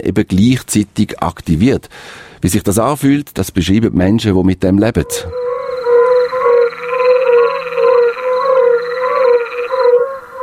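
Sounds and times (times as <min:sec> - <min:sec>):
speech: 0:00.0 - 0:05.5
fire-bellied toads calling in a chorus: 0:05.0 - 0:10.4.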